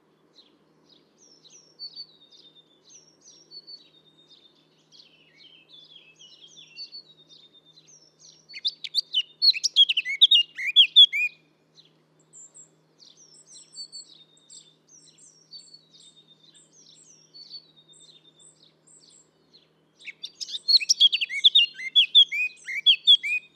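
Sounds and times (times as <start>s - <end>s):
blackcap singing: 0.4s - 23.5s.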